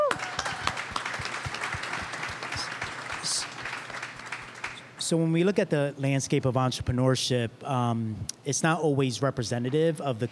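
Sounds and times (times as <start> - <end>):
audience applause: 0.0 - 5.0
speech: 5.1 - 10.3.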